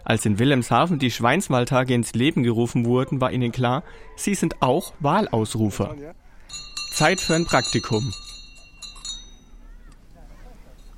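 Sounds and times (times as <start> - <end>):
speech: 0.1 - 8.3
hand bell ringing: 6.5 - 9.6.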